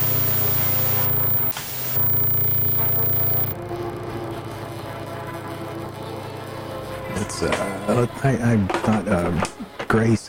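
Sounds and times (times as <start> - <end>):
white noise: 0.0 - 3.6
speech: 7.4 - 10.2.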